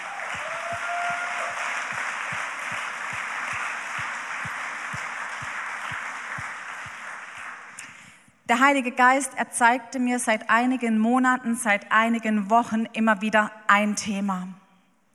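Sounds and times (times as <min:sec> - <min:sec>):
crowd applause: 0:00.0 - 0:08.1
speech: 0:08.5 - 0:14.6.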